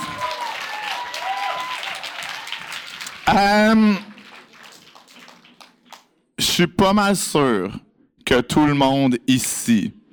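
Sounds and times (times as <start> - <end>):
audience applauding performers at a French-language show: 0.0 - 6.1
speech: 3.3 - 4.1, 6.6 - 10.0.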